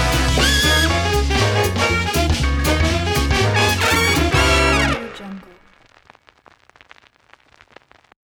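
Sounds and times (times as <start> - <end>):
postmodern big band logo music: 0.0 - 5.4.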